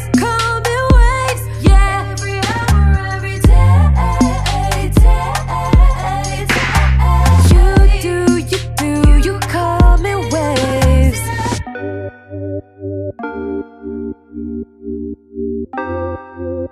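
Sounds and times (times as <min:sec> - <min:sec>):
karaoke backing music: 0:00.0 - 0:12.0.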